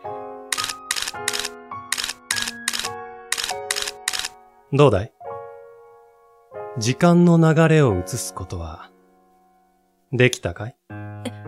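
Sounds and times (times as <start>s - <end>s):
camera shutter clicking as a photo is taken: 0.5s - 4.4s
speech: 4.7s - 5.2s, 6.8s - 8.9s, 10.1s - 11.4s.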